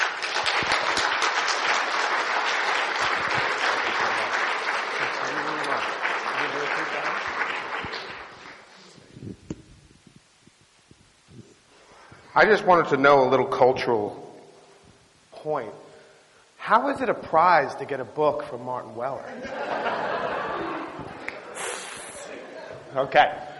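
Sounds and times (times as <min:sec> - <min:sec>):
audience applause: 0:00.0 - 0:08.7
speech: 0:12.4 - 0:14.2, 0:15.4 - 0:15.9, 0:16.7 - 0:20.0, 0:22.9 - 0:23.4
laughter: 0:19.3 - 0:23.0.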